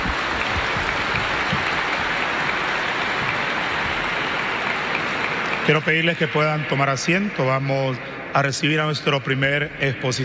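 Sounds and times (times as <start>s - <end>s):
crowd clapping: 0.0s - 6.8s
speech: 5.7s - 10.2s.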